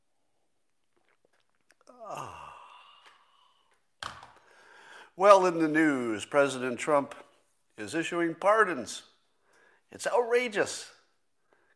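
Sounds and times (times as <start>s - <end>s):
person sipping coffee: 0.2s - 4.6s
satisfied ahh: 1.7s - 5.2s
speech: 5.2s - 7.2s, 7.8s - 9.1s, 9.9s - 11.0s.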